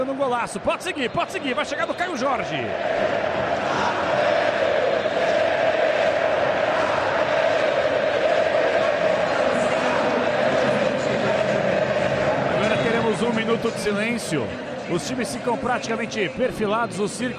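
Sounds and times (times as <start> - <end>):
speech: 0.0 - 4.2, 13.3 - 17.3
football fans chanting a player's name: 2.7 - 13.0.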